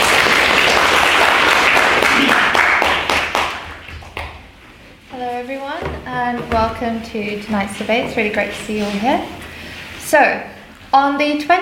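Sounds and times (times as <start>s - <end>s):
audience applause: 0.0s - 4.3s
speech: 6.2s - 9.4s, 10.1s - 11.6s.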